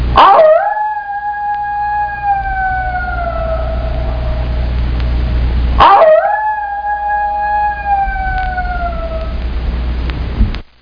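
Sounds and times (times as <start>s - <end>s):
steady low rumbling background: 0.0s - 10.8s
coyote howling: 0.2s - 4.8s, 5.8s - 9.4s.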